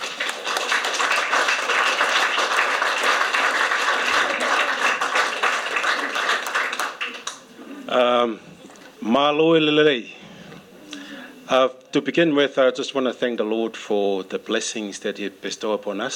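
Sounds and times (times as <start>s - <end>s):
crowd applause: 0.0s - 7.6s
speech: 8.0s - 10.2s, 11.5s - 16.1s.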